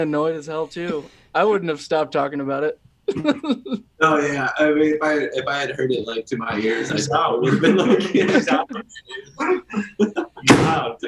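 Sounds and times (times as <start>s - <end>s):
speech: 0.0s - 11.0s
laughter: 3.1s - 11.0s
door slamming: 10.4s - 10.9s.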